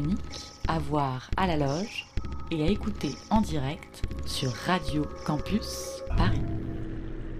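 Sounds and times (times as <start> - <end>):
speech: 0.0 - 6.6
radio festival sound branding jingle: 1.8 - 7.3.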